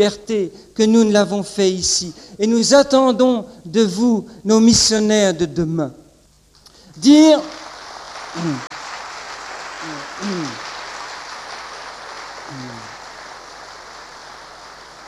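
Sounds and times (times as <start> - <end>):
speech: 0.0 - 6.0, 7.0 - 7.6, 8.4 - 8.7
audience applause: 7.4 - 15.0.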